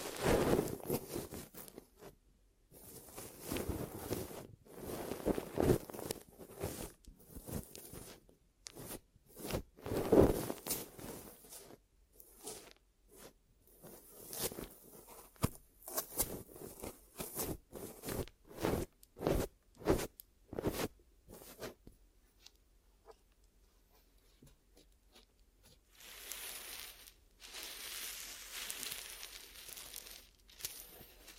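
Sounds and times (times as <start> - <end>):
ear massage and cleaning rubbing, crinkling and scraping strokes: 0.0 - 1.7, 2.7 - 21.8, 25.2 - 31.3.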